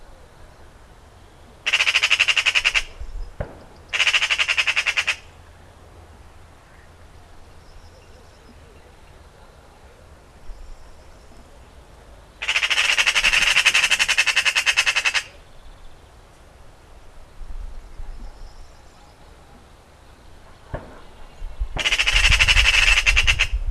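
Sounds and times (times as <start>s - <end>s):
Eurasian Magpie rattling chatter: 1.7s - 2.9s, 3.9s - 5.3s, 12.4s - 15.3s, 21.8s - 23.6s.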